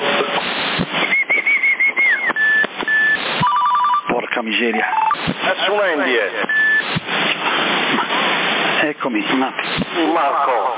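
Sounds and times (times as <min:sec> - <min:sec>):
CB radio static hiss: 0:00.0 - 0:10.7
high whistle tone on a CB radio in Sassari: 0:00.4 - 0:04.1, 0:06.4 - 0:07.0
low beeping pips: 0:01.0 - 0:05.2, 0:06.4 - 0:06.9
speech: 0:04.4 - 0:06.7, 0:08.9 - 0:10.7.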